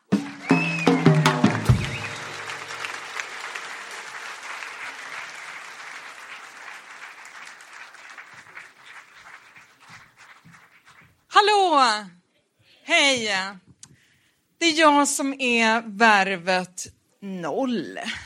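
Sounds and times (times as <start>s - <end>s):
audience applauding: 0.0s - 11.3s
whoops and cheers: 0.2s - 5.4s
speech: 11.8s - 12.2s, 12.9s - 13.6s, 14.6s - 18.2s.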